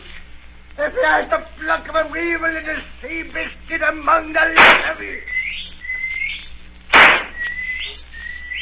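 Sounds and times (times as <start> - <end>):
speech: 1.0 - 5.4
loud noisy burst: 4.6 - 5.1, 6.9 - 7.5
whistled signal: 5.3 - 8.5.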